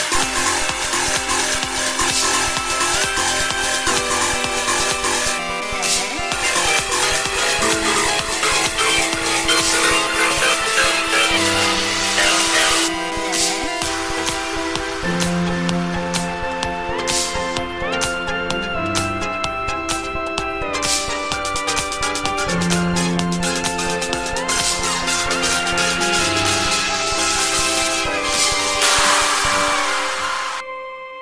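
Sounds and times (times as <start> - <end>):
ringtone: 0.0 - 30.7.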